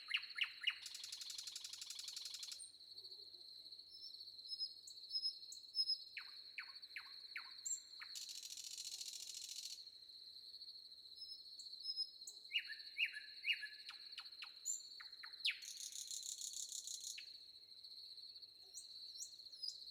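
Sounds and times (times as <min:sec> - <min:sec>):
common nightingale singing: 0:00.0 - 0:02.7, 0:03.9 - 0:09.8, 0:11.8 - 0:17.4, 0:18.7 - 0:19.8.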